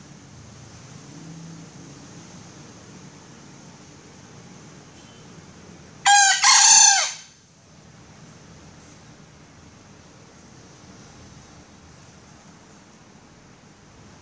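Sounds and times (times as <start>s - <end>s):
female junglefowl giving a raspy crow-like call: 6.0s - 7.4s.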